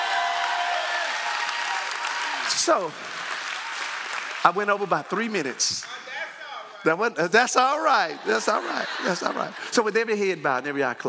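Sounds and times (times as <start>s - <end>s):
church congregation clapping in praise: 0.0s - 6.2s
speech: 2.6s - 3.3s, 4.4s - 6.1s, 6.8s - 11.0s
laughter: 7.8s - 10.2s.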